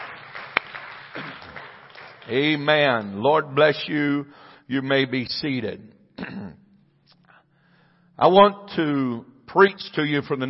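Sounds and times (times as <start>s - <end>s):
audience clapping hands: 0.0s - 3.4s
speech: 2.3s - 6.6s, 8.2s - 10.4s.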